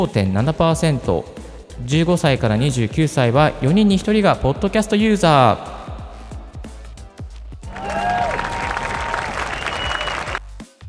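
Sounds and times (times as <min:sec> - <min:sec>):
speech: 0:00.0 - 0:05.7
applause: 0:07.6 - 0:10.5.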